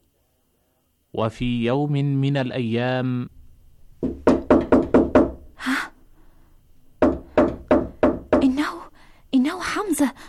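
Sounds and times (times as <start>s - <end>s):
speech: 1.1s - 3.4s
firm knocking on a door: 4.0s - 5.5s, 7.0s - 8.6s.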